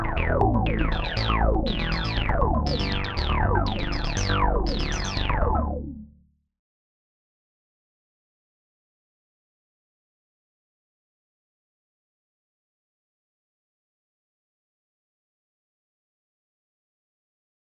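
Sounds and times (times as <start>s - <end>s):
piano arpeggios: 0.0s - 5.7s.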